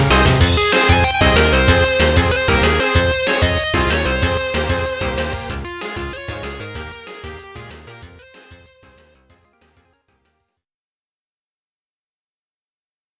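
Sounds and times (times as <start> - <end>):
battle background music: 0.0 - 8.8.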